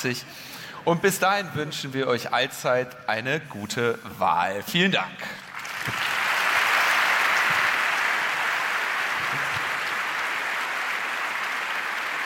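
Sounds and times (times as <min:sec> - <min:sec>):
speech: 0:00.0 - 0:06.0
audience applause: 0:05.4 - 0:12.2.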